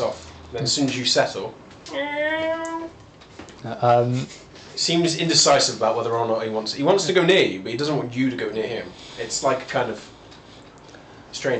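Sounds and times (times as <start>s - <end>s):
speech: 0.5s - 3.0s, 3.6s - 10.1s, 11.3s - 11.5s
cat mewling for attention: 1.9s - 2.9s.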